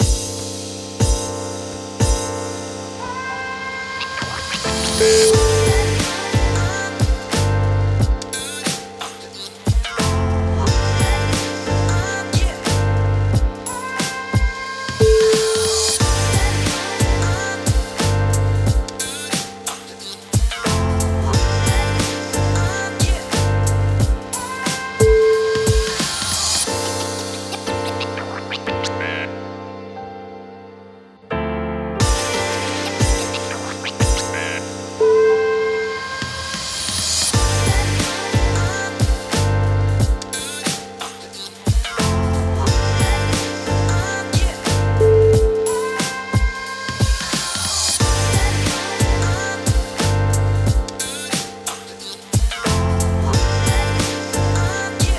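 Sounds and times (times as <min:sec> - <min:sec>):
hip hop music: 0:00.0 - 0:31.3, 0:32.0 - 0:55.1.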